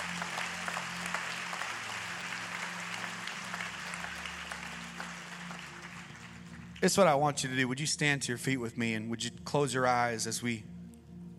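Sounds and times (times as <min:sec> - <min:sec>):
audience applause: 0:00.0 - 0:07.0
speech: 0:06.8 - 0:10.7.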